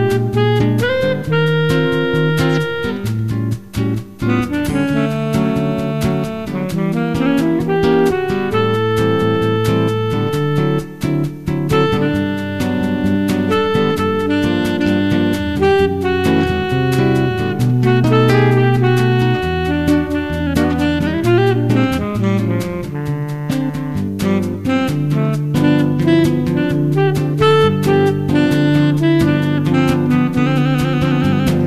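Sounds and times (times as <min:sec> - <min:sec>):
wave saxophone: 0:00.0 - 0:31.6.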